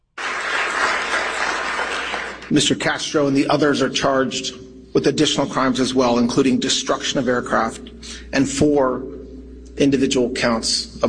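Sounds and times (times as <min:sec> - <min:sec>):
crowd cheering and applause after an indictment announcement: 0:00.0 - 0:02.5
speech: 0:02.5 - 0:09.1, 0:09.8 - 0:11.0.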